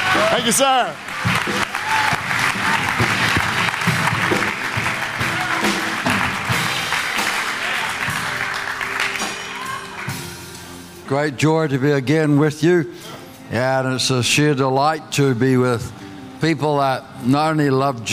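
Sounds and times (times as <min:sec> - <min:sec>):
congregation at C3 Powerhouse church applauding to welcome their pastor: 0:00.0 - 0:10.4
speech: 0:00.4 - 0:02.1, 0:11.1 - 0:18.1.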